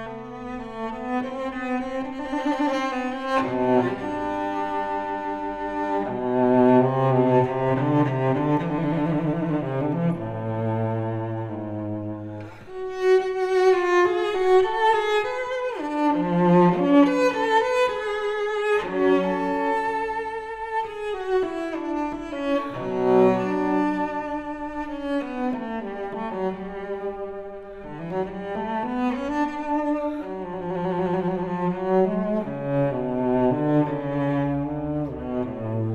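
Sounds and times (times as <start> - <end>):
solo cello suite: 0.0 - 35.9.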